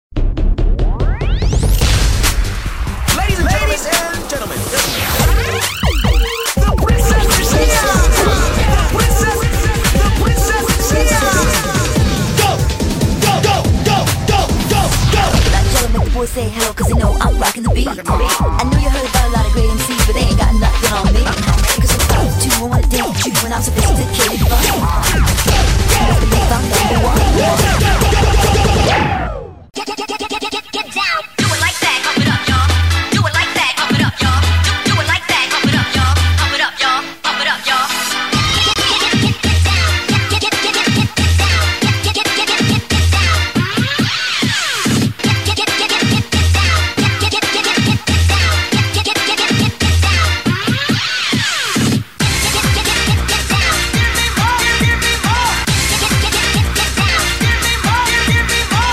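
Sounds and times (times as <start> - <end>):
cheer music mix: 0.2 - 58.9.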